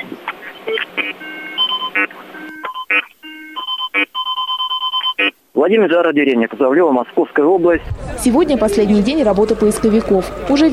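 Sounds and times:
metal detector beeping: 0.6s - 5.4s
speech: 5.6s - 10.7s.

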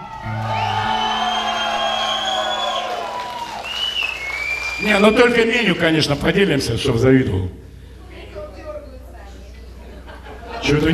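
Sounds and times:
audience cheering: 0.0s - 5.6s
audience clapping: 0.0s - 6.4s
speech: 4.8s - 7.6s, 10.7s - 10.9s
laughter: 9.6s - 10.9s.

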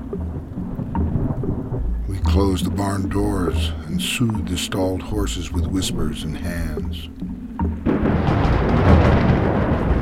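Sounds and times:
loud crack of thunder rolling into a heavy rumble: 0.0s - 7.0s, 7.7s - 10.0s
speech: 2.2s - 7.3s.

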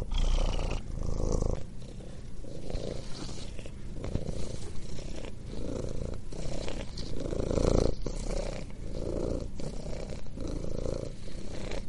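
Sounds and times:
cat purring: 0.0s - 11.8s.

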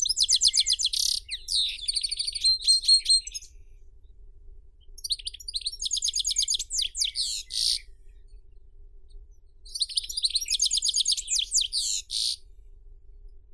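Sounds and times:
European goldfinch song: 0.0s - 3.8s, 4.8s - 8.4s, 9.6s - 12.5s.

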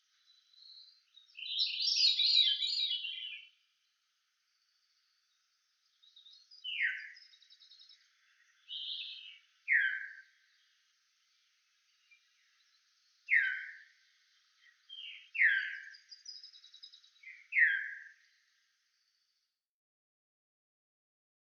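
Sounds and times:
veery song: 0.7s - 3.5s, 6.0s - 10.2s, 12.0s - 13.8s, 14.6s - 18.2s.

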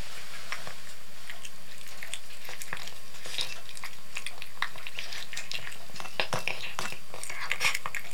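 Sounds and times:
cat eating canned cat food: 0.1s - 8.1s.

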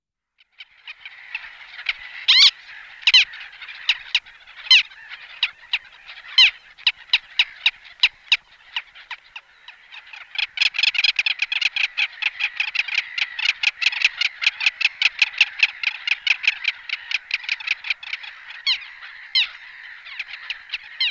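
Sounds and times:
little gull Larus minutus giving short sharp kek calls: 0.7s - 21.0s.

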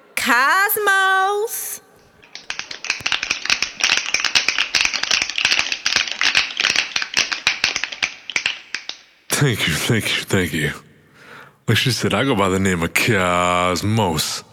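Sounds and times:
speech: 0.2s - 1.9s, 9.4s - 10.9s, 11.7s - 14.5s
audience snapping fingers to welcome a poet onstage: 1.9s - 10.6s.

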